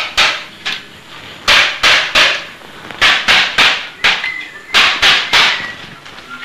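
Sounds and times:
hammer striking nails: 0.0 - 0.8, 1.5 - 5.6.

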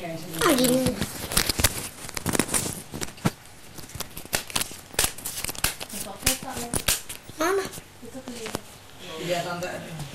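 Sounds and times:
playing cards being shuffled: 0.3 - 7.8.

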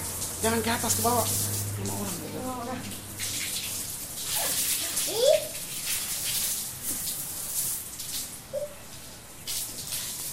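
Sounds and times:
water spraying: 0.0 - 10.3
speech: 0.4 - 3.0
child's voice: 4.3 - 5.6.

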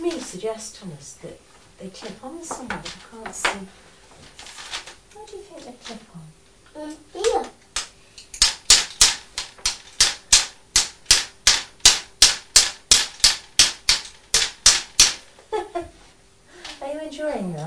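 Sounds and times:
speech: 0.3 - 4.4, 5.2 - 7.6, 17.2 - 17.6
toy hammer used by a child: 7.2 - 15.2.

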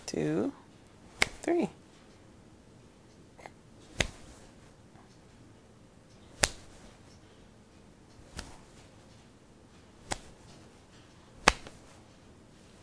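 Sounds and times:
speech: 0.1 - 0.6, 1.5 - 1.8
hand clapping: 11.5 - 11.8.

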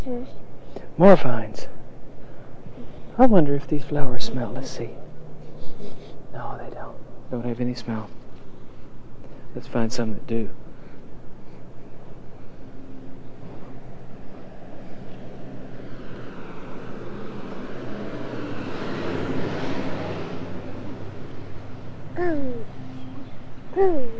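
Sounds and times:
speech: 0.0 - 1.7, 3.2 - 5.0, 5.8 - 8.2, 9.5 - 10.6
car driving by: 13.0 - 23.6.

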